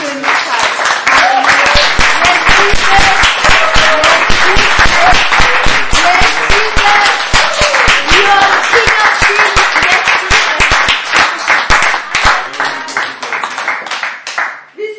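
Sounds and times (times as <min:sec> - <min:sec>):
audience applause at a Christian worship gathering: 0:00.0 - 0:14.6.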